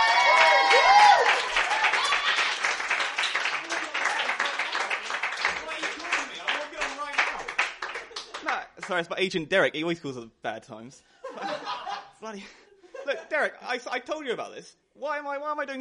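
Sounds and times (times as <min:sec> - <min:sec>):
audience applause for a comedy act: 0:00.0 - 0:09.1
speech: 0:08.9 - 0:15.7
laughter: 0:11.2 - 0:13.4.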